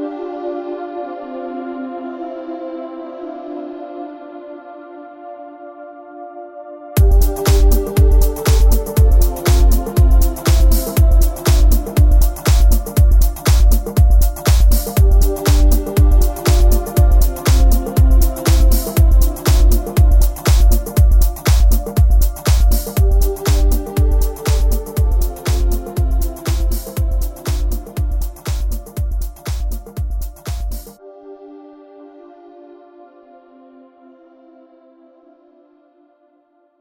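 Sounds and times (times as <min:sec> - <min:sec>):
tech house music: 0:07.0 - 0:31.8.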